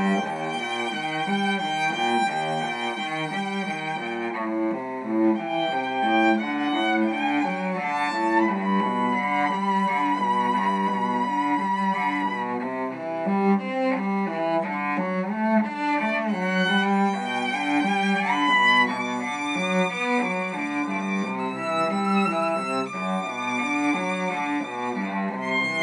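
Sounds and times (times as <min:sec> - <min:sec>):
violin and cello duo: 0:00.0 - 0:25.8.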